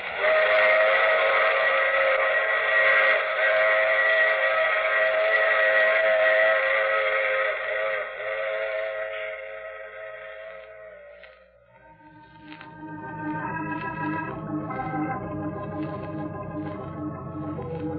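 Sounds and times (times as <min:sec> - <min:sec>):
steam train whistle: 0:00.0 - 0:17.9.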